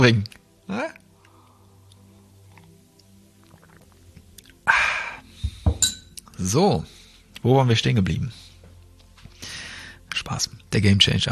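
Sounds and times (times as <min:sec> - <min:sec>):
speech: 0:00.0 - 0:01.0, 0:06.4 - 0:08.5, 0:10.3 - 0:11.3
person sipping tea: 0:01.0 - 0:05.3.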